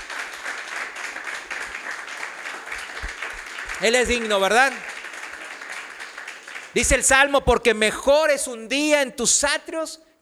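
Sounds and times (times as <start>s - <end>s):
church congregation applauding the Lord: 0.0s - 7.4s
speech: 3.8s - 4.9s, 6.8s - 10.2s.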